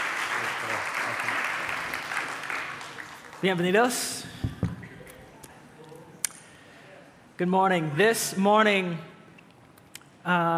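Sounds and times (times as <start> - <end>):
audience applause: 0.0 - 3.6
speech: 0.6 - 1.9, 3.4 - 4.4, 7.4 - 9.1, 10.2 - 10.5.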